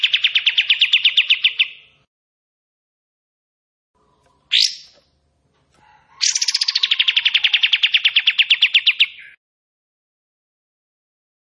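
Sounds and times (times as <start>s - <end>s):
bulbul song: 0.0s - 2.1s, 4.0s - 5.2s, 6.2s - 9.4s.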